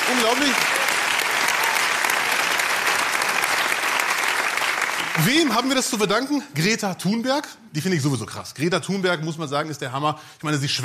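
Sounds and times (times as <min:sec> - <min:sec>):
crowd applauding: 0:00.0 - 0:06.0
speech: 0:00.1 - 0:00.8, 0:05.2 - 0:10.8.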